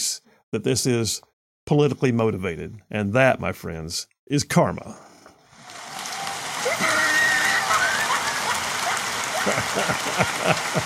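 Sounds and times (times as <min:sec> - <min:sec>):
speech: 0:00.4 - 0:05.1, 0:09.4 - 0:10.8
applause: 0:05.5 - 0:10.8
laugh track: 0:06.7 - 0:10.8.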